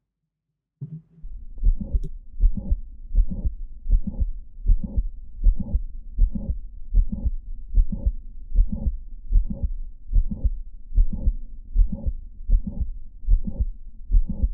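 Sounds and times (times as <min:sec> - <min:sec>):
heartbeat through a stethoscope with mitral click and late systolic murmur: 0:00.9 - 0:14.5.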